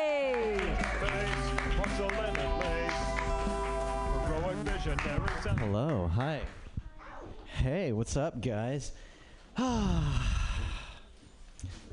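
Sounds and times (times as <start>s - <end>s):
audience applause for a comedian: 0.0s - 6.4s
speech: 4.9s - 6.6s, 7.6s - 10.3s.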